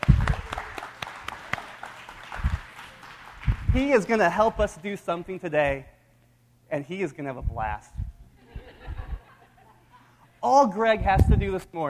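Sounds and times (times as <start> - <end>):
round of applause: 0.0 - 4.3
speech: 3.8 - 5.9, 6.7 - 8.0, 10.4 - 11.8
laughter: 8.4 - 10.4.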